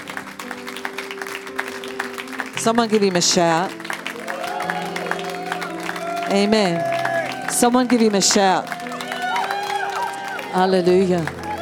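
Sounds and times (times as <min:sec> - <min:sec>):
crowd clapping: 0:00.0 - 0:11.5
speech: 0:02.6 - 0:03.8, 0:06.3 - 0:07.0, 0:07.6 - 0:08.8, 0:10.5 - 0:11.4.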